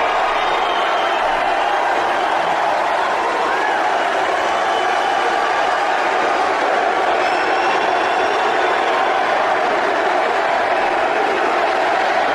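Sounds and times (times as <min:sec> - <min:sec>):
large rally crowd cheering: 0:00.0 - 0:12.3.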